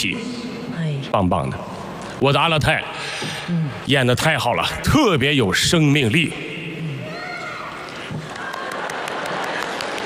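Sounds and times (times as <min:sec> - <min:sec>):
speech: 0:00.0 - 0:00.4, 0:01.1 - 0:06.6
crowd applause: 0:08.2 - 0:10.0.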